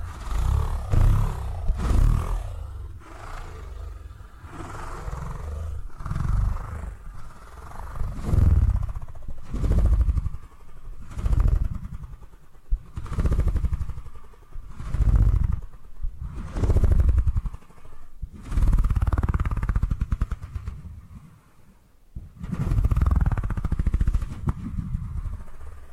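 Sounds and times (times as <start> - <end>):
purring: 0.0 - 25.9.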